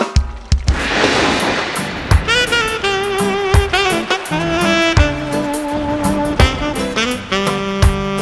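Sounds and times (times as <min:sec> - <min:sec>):
thunder: 0:00.2 - 0:08.1.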